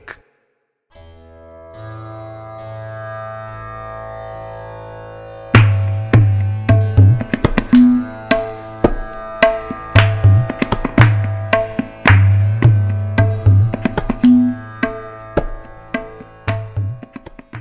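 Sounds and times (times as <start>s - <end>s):
tabla: 5.5s - 17.5s.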